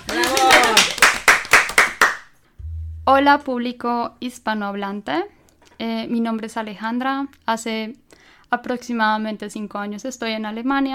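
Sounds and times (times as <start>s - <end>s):
audience applause: 0.0s - 2.2s
speech: 3.1s - 10.9s.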